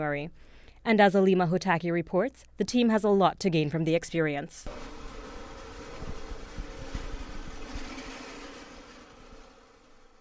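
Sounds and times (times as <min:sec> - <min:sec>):
speech: 0:00.0 - 0:05.0
drill press running in a design and technology classroom: 0:04.7 - 0:10.1.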